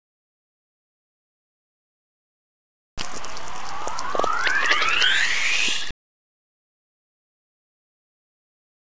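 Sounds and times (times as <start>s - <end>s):
reversed earth frequency tone: 3.0s - 5.9s.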